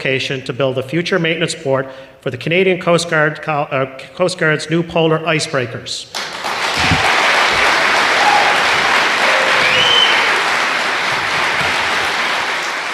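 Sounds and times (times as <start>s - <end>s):
speech: 0.0s - 7.0s
audience applause: 6.1s - 12.9s.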